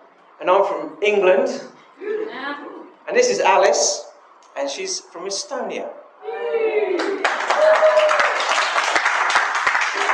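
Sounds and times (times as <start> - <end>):
speech: 0.4 - 6.8
audience round of applause: 7.0 - 10.1.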